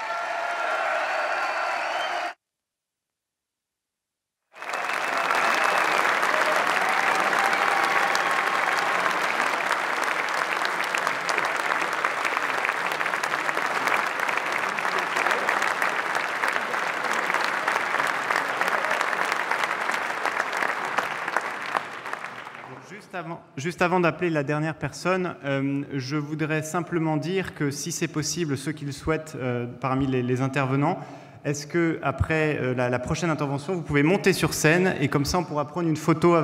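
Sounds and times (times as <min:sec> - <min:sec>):
large audience applause: 0:00.0 - 0:02.4, 0:04.6 - 0:23.0
speech: 0:23.2 - 0:36.4.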